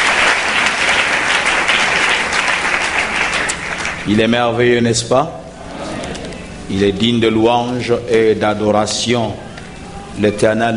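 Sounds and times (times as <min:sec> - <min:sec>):
church congregation clapping in praise of God: 0:00.0 - 0:04.7
speech: 0:04.0 - 0:05.4, 0:06.7 - 0:09.5, 0:10.2 - 0:10.7.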